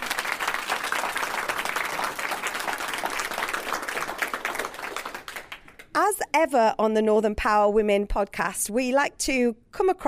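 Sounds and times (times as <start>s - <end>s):
audience applause: 0.0s - 5.9s
speech: 6.1s - 10.0s.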